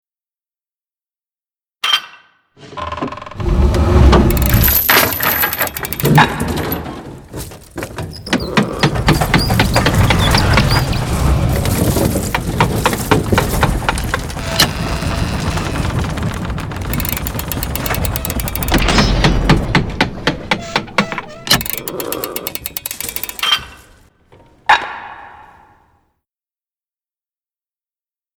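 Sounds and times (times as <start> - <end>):
machine build: 2.6 - 24.5.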